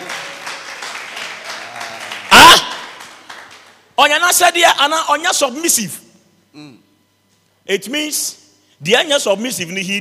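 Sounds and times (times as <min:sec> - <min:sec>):
hands clapping: 0:00.0 - 0:03.8
speech: 0:04.0 - 0:06.0, 0:07.7 - 0:09.9.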